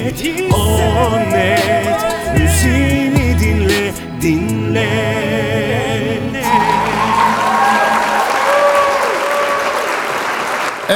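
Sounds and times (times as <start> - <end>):
speech: 0.0 - 1.5
brief musical ending: 0.0 - 8.7
faint whistles and cheers: 6.5 - 10.4
large crowd clapping applause sound effect: 6.7 - 10.9.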